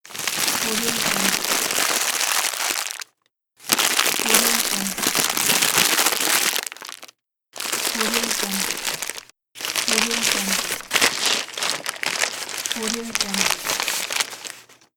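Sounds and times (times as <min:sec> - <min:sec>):
paper bag rustling: 0:00.0 - 0:03.0, 0:03.6 - 0:14.9.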